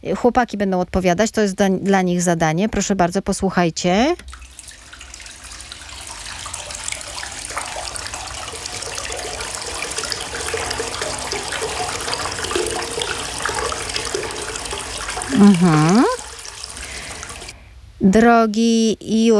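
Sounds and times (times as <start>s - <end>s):
speech: 0.0s - 4.4s, 15.4s - 16.1s, 18.0s - 19.3s
water pouring into a bathtub: 4.2s - 17.6s.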